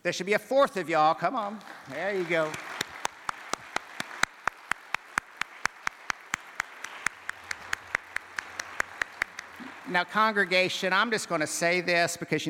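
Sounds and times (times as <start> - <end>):
speech: 0.0 - 2.7, 9.9 - 12.4
audience applause: 1.3 - 11.8.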